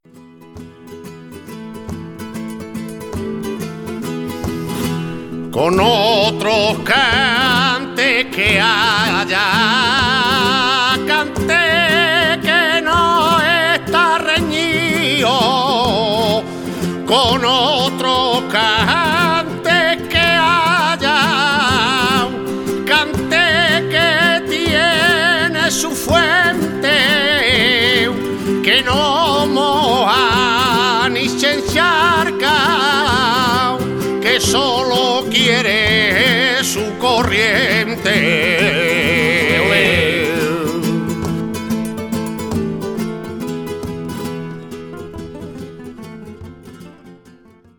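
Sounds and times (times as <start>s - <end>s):
fandango music: 0.0s - 47.7s.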